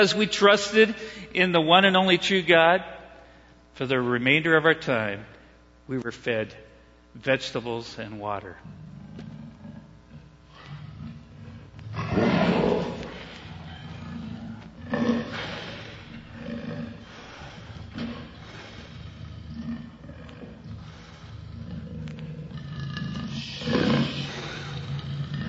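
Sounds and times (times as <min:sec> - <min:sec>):
speech: 0:00.0 - 0:03.0, 0:03.8 - 0:05.3, 0:05.9 - 0:08.9
lions roaring: 0:08.6 - 0:25.4.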